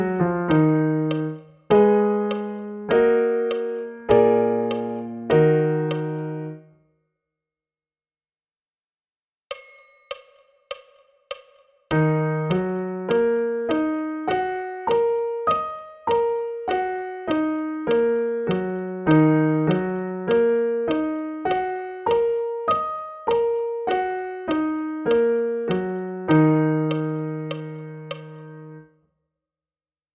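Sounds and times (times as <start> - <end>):
E-flat minor scale and arpeggio: 0.0 - 6.7, 12.0 - 28.9.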